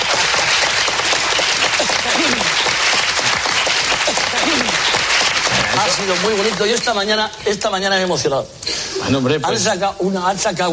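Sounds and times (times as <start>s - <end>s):
audience applause: 0.0s - 6.8s
speech: 6.0s - 10.7s.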